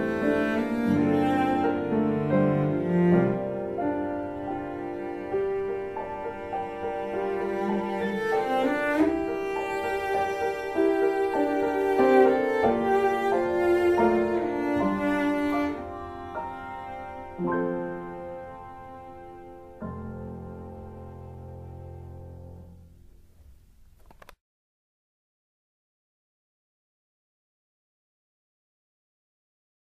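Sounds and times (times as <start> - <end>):
intermezzo for cello: 0.0 - 23.2.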